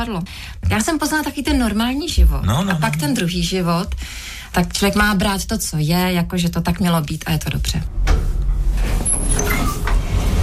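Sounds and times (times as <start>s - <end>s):
speech: 0.0s - 8.2s
elevator doors opening at Kavčí hory in Prague: 7.9s - 10.4s.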